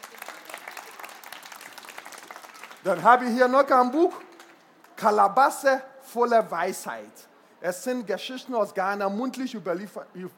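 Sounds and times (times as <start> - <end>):
audience applause at a book presentation: 0.0 - 3.5
speech: 2.8 - 4.3, 5.0 - 10.3.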